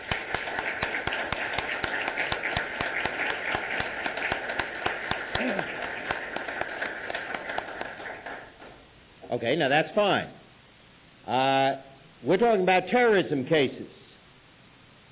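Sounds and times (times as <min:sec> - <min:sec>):
audience applause for the judges: 0:00.0 - 0:08.8
speech: 0:09.4 - 0:10.4, 0:11.2 - 0:14.0.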